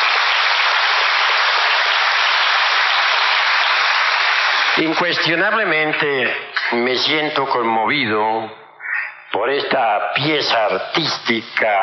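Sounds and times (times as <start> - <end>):
audience applause: 0.0 - 6.0
speech: 4.8 - 8.6, 9.3 - 11.8.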